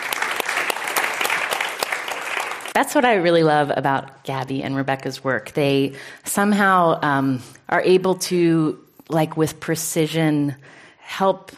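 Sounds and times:
audience clapping at a talk on grief and loss: 0.0s - 3.0s
speech: 2.8s - 11.5s.

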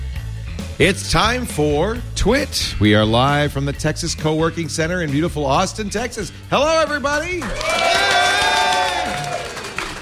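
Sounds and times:
speech: 0.8s - 8.1s
crowd cheering: 7.4s - 9.9s.

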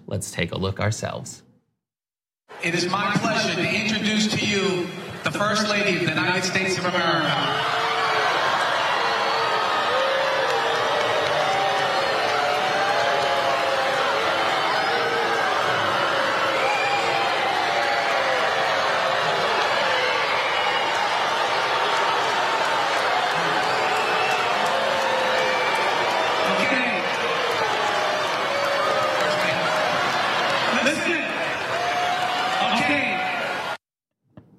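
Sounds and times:
speech: 0.1s - 1.5s, 2.6s - 7.7s
crowd booing: 6.6s - 33.8s.

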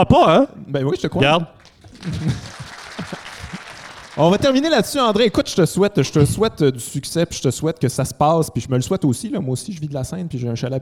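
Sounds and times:
speech: 0.0s - 2.4s, 4.2s - 10.7s
applause sound effect from button: 1.6s - 5.0s
laughter: 1.8s - 4.6s.

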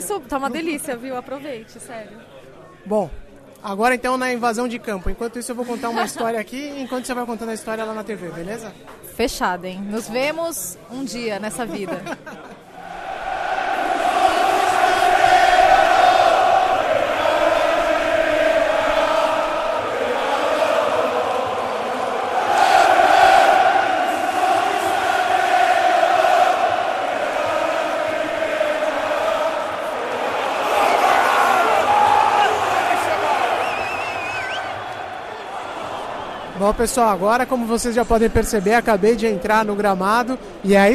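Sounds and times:
speech: 0.0s - 12.5s, 36.7s - 40.9s
laughter: 5.6s - 7.3s, 11.5s - 12.8s
stadium crowd roaring and chanting before football final: 12.5s - 40.9s.

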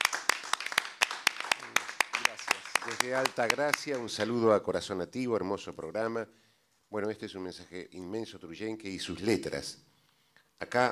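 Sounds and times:
audience applause: 0.0s - 4.3s
speech: 3.0s - 9.9s, 10.6s - 10.9s.

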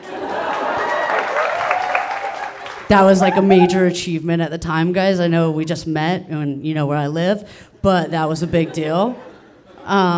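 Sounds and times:
audience applause: 0.0s - 3.8s
speech: 2.9s - 10.1s
faint voice or whistle: 3.2s - 3.8s
laughter: 3.2s - 4.0s.

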